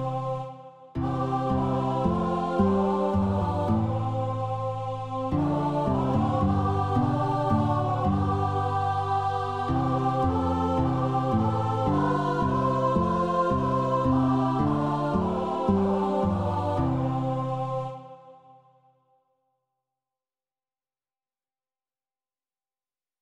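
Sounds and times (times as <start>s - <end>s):
women's choir singing: 0.0s - 18.6s
guitar: 1.0s - 4.4s, 5.3s - 17.6s.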